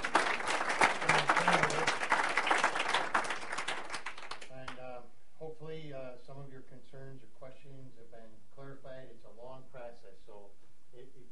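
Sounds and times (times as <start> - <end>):
round of applause: 0.0 - 4.8.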